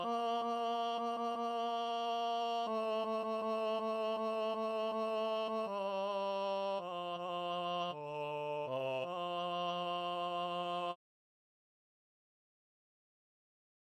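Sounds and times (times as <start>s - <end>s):
chorus singing: 0.0s - 11.0s.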